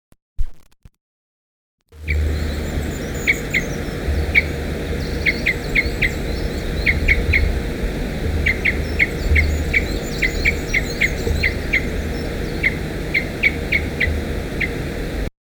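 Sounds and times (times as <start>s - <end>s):
type C Parrot Crossbill calls: 2.0s - 15.3s.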